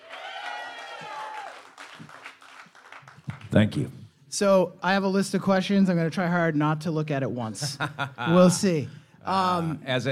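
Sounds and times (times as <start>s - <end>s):
audience applause: 0.0s - 3.7s
speech: 3.5s - 10.1s
laughter: 7.6s - 8.6s.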